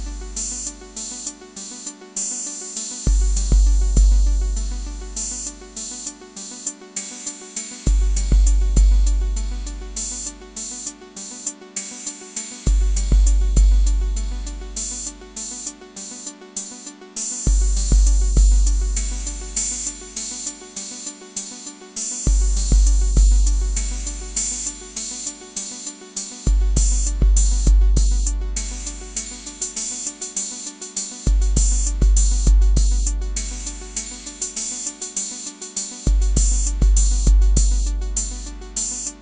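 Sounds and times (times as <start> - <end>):
drums playing: 3.1 - 4.5, 7.9 - 9.4, 12.7 - 14.2, 17.5 - 19.7, 22.3 - 24.6, 26.5 - 29.8, 31.3 - 34.6, 36.1 - 38.4.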